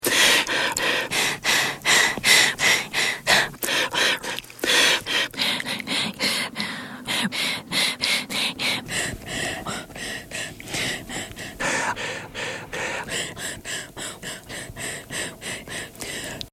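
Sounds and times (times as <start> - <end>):
breathing: 0.0 - 16.5.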